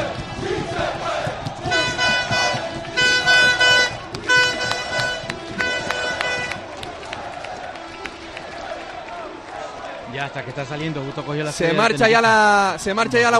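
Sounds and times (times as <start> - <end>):
football fans cheering and shouting farewell: 0.0 - 13.3
car horns blaring: 0.2 - 8.3
speech: 10.4 - 13.3.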